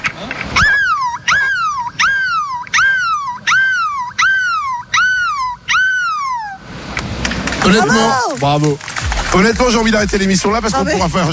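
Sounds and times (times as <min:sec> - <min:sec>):
person imitating seagull cries: 0:00.6 - 0:06.6, 0:07.8 - 0:08.4
speech: 0:07.7 - 0:11.3.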